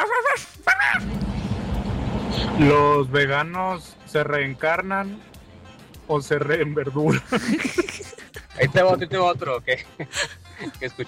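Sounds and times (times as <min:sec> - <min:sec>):
person imitating a dog barking: 0:00.0 - 0:01.0
steady low rumbling noise: 0:01.0 - 0:03.3
speech: 0:02.6 - 0:05.3, 0:06.1 - 0:07.8, 0:08.6 - 0:11.0
laughter: 0:07.1 - 0:10.8.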